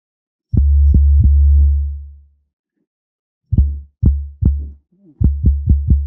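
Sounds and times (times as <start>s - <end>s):
physically modelled mass and one link synthesis with increased damping: 0.6s - 2.0s, 3.5s - 6.0s.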